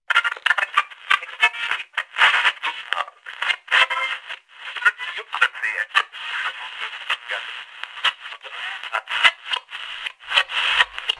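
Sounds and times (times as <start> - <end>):
radio: 0.1 - 11.1.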